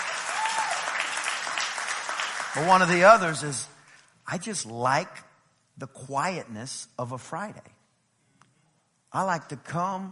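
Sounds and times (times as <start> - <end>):
crowd applauding: 0.0 - 3.4
speech: 2.6 - 3.7, 4.3 - 7.7, 9.1 - 10.0.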